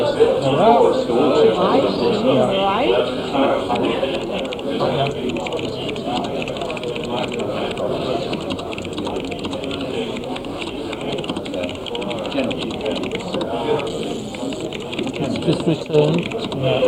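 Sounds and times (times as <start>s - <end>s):
speech: 0.1s - 6.3s, 15.6s - 16.8s
typing on IBM computer keyboard: 3.4s - 16.8s.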